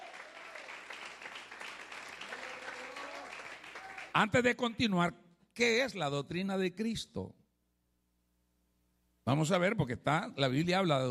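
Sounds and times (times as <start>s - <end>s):
audience applauding: 0.0s - 4.2s
speech: 4.2s - 7.4s, 9.3s - 11.1s.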